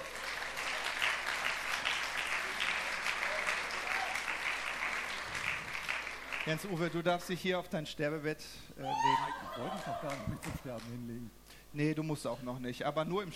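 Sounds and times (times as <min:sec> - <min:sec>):
audience applause: 0:00.0 - 0:07.0, 0:09.6 - 0:11.0
speech: 0:06.5 - 0:13.3
laughter: 0:08.9 - 0:10.7.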